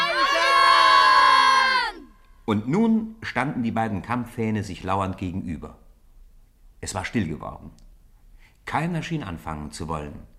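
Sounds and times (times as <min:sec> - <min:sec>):
group of schoolboys roaring: 0:00.0 - 0:02.1
speech: 0:02.5 - 0:05.8, 0:06.8 - 0:07.8, 0:08.6 - 0:10.3.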